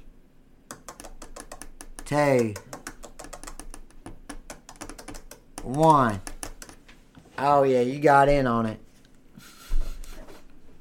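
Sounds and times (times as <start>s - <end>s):
Morse code message being tapped out: 0.7s - 6.9s
speech: 2.1s - 2.7s, 5.7s - 6.3s, 7.4s - 8.8s.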